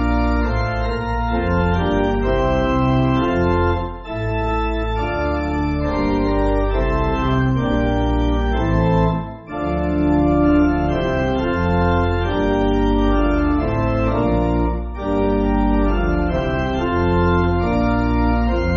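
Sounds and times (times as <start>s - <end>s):
pipe organ church backing music: 0.0s - 18.7s.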